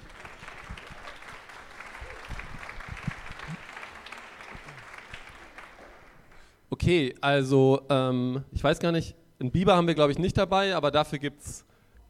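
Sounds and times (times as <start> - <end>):
audience applauding: 0.0 - 6.6
speech: 6.8 - 11.7.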